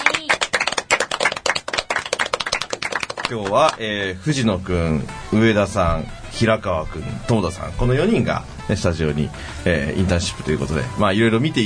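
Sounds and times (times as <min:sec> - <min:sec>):
applause, hands clapping: 0:00.0 - 0:03.8
speech: 0:03.3 - 0:11.6.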